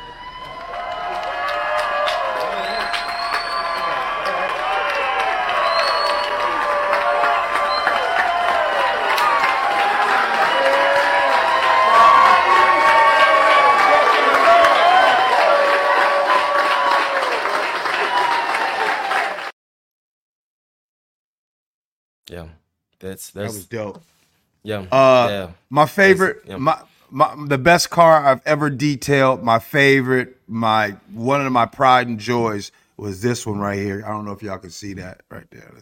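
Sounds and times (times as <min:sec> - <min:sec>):
crowd cheering: 0:00.0 - 0:19.5
clapping: 0:00.4 - 0:19.5
speech: 0:23.1 - 0:35.8.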